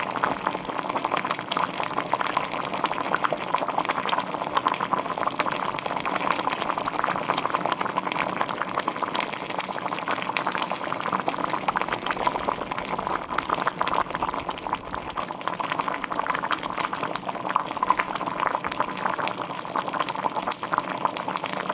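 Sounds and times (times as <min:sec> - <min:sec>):
red beans boiling: 0:00.0 - 0:21.7.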